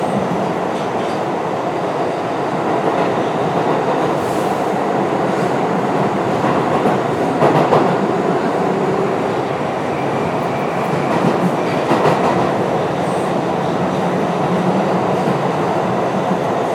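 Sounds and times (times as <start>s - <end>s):
train: 0.0s - 16.7s.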